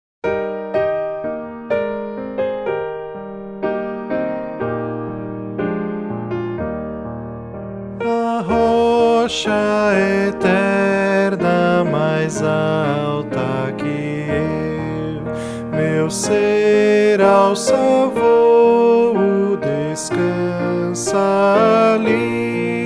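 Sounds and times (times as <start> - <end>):
piano: 0.2 - 22.8
person singing: 8.0 - 22.8.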